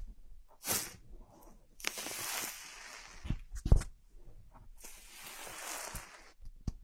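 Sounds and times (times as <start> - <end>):
bright hiss: 1.8 - 3.4, 4.8 - 6.4
ear massage soft thumps and rubbing: 4.8 - 6.4.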